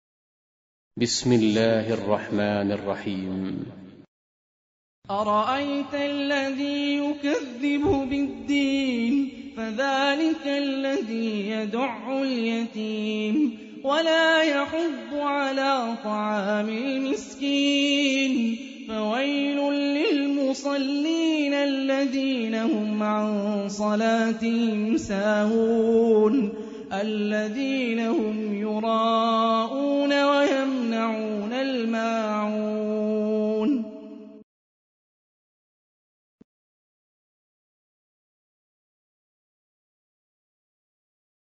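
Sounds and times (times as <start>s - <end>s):
Quran recitation: 1.0s - 3.9s, 5.1s - 34.4s.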